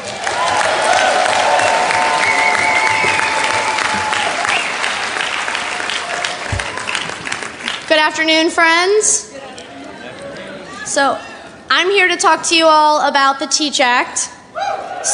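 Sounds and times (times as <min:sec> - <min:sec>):
audience applause greeting a speaker: 0:00.0 - 0:07.9
speech: 0:08.0 - 0:09.3, 0:10.9 - 0:14.4.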